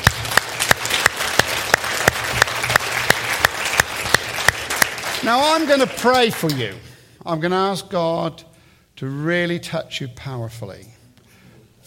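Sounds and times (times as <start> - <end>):
audience applause: 0.0 - 6.5
speech: 5.3 - 11.0.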